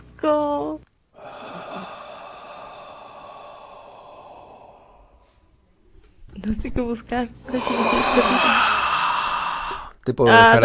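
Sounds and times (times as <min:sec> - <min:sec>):
speech: 0:00.2 - 0:00.9, 0:06.5 - 0:08.7, 0:10.1 - 0:10.6
breathing close to the microphone: 0:01.2 - 0:06.0, 0:07.5 - 0:10.0.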